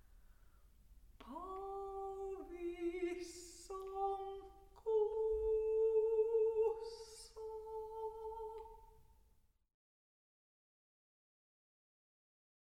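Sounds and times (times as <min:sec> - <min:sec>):
solo a cappella voice: 0:01.1 - 0:09.4.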